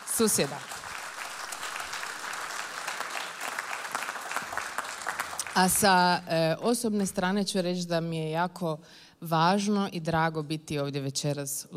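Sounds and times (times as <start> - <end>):
concert audience applause at a jazz orchestra event: 0.0 - 5.8
speech: 0.2 - 0.8, 5.6 - 11.7.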